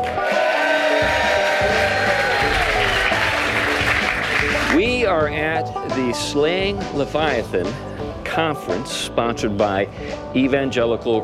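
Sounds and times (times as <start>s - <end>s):
crowd noise: 0.0s - 4.9s
live studio audience clapping at a church-sponsored conference in Tacoma, Washington: 0.0s - 4.9s
speech: 5.1s - 11.2s.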